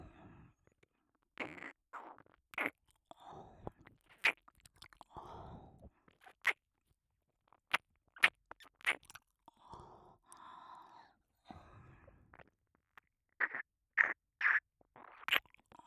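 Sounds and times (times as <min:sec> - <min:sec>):
wet kisses on the ear: 0:01.4 - 0:02.7, 0:07.7 - 0:09.2, 0:13.4 - 0:15.6.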